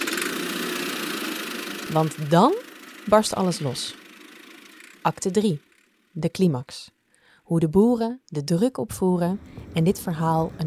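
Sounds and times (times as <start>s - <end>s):
tractor engine running: 0.0s - 6.2s
speech: 1.9s - 4.0s, 5.0s - 10.6s.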